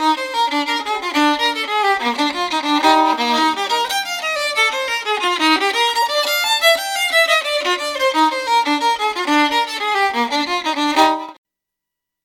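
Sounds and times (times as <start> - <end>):
fiddle playing a jig: 0.0 - 11.4.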